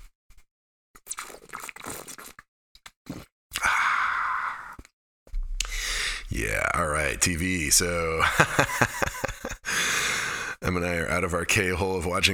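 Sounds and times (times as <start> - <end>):
slurping sips and swallows of sparkling mineral water: 1.0 - 4.9, 5.6 - 6.4
low thud: 5.3 - 9.1
laughter: 6.3 - 10.6
speech: 6.4 - 9.1, 10.7 - 12.3.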